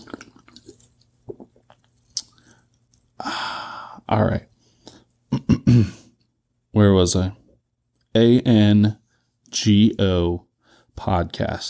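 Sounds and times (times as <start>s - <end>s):
person sipping grapefruit sparkling water: 0.0s - 4.0s
speech: 4.1s - 4.5s, 5.7s - 6.0s, 6.8s - 7.4s, 8.2s - 11.6s.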